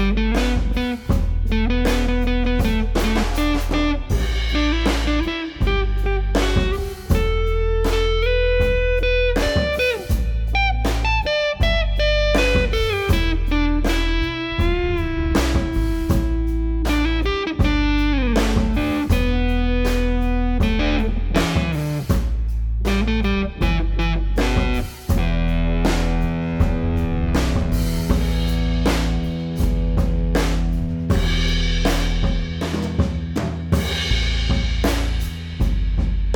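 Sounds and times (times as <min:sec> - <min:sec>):
slow blues played with brushes: 0:00.0 - 0:36.3.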